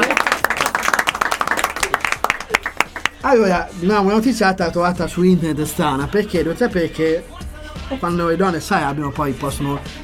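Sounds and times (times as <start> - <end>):
applause: 0.0 - 3.2
speech: 3.3 - 7.3, 7.9 - 10.0.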